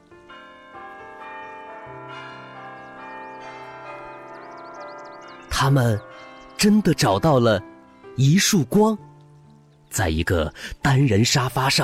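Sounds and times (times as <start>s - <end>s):
clock chiming midnight in a house: 0.3s - 7.6s
speech: 5.6s - 9.1s, 9.9s - 11.8s.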